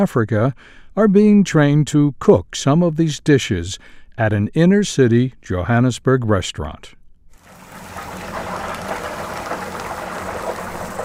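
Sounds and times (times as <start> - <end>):
speech: 0.0 - 7.0
batter-coated chicken sizzling in frying oil: 7.4 - 11.0.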